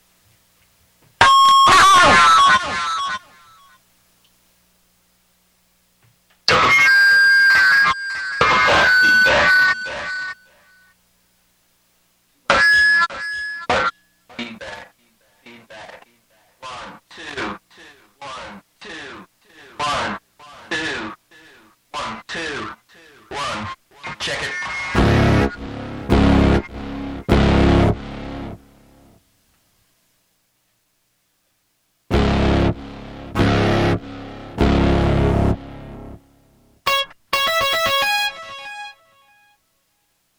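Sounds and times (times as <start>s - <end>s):
audio feedback on feedback: 1.2s - 3.8s, 6.5s - 11.0s, 12.4s - 14.3s, 24.4s - 29.2s, 32.1s - 39.6s.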